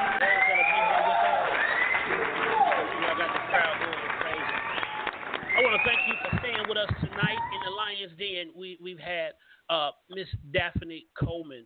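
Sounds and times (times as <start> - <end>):
audience applause: 0.0 - 7.9
speech: 8.4 - 11.6.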